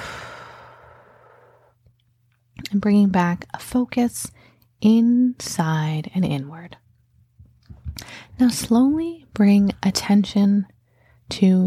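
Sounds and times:
slow exhale through the mouth during a guided body-scan meditation: 0.0 - 1.7
speech: 2.7 - 6.8, 8.1 - 10.7, 11.3 - 11.6.

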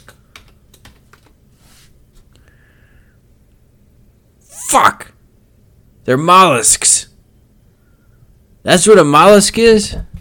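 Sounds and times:
typing on a computer keyboard: 0.0 - 1.4
speech: 4.7 - 5.1, 6.1 - 7.1, 8.6 - 10.1.

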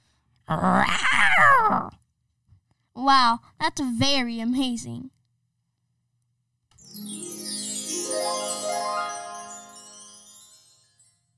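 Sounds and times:
person imitating a tiger's roar: 0.5 - 2.0
speech: 0.5 - 2.0, 3.0 - 5.2.

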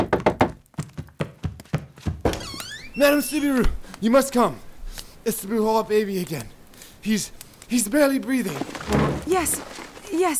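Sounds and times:
knocking on a door: 0.0 - 0.6
speech: 3.0 - 10.3.

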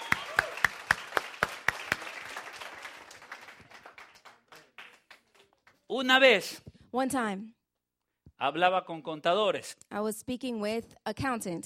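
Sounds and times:
audience applause: 0.0 - 5.8
speech: 5.9 - 7.6, 8.4 - 11.6.

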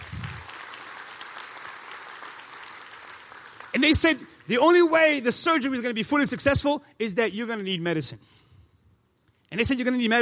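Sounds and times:
audience clapping: 0.0 - 4.4
speech: 3.7 - 8.3, 9.5 - 10.2.

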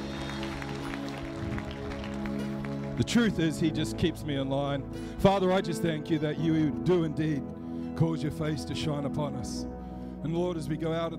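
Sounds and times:
audience applause: 0.0 - 3.1
speech: 3.0 - 11.1.

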